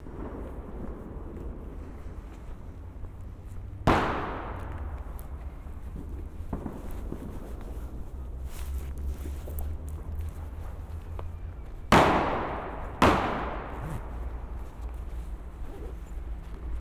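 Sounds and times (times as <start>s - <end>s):
fireworks: 0.0s - 16.7s.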